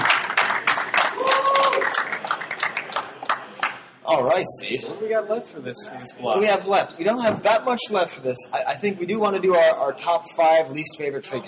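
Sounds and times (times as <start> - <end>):
audience applause: 0.0 - 3.8
speech: 4.4 - 11.4.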